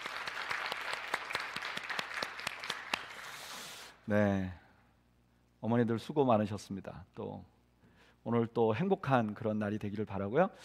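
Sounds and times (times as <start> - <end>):
audience applause: 0.0 - 3.2
speech: 4.1 - 4.6, 5.6 - 7.5, 8.2 - 10.6.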